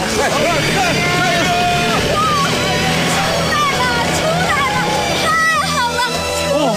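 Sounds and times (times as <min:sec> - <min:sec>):
stuck car engine revving while people push it out of a rut: 0:00.0 - 0:06.5
people talking: 0:00.0 - 0:06.7.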